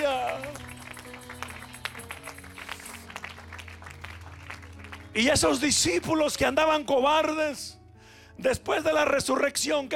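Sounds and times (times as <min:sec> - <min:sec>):
audience applause: 0:00.0 - 0:05.2
speech: 0:05.2 - 0:07.8, 0:08.4 - 0:09.9.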